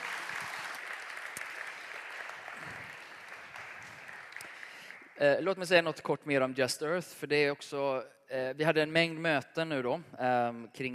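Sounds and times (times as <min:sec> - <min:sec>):
audience applause: 0:00.0 - 0:05.2
speech: 0:05.2 - 0:10.9.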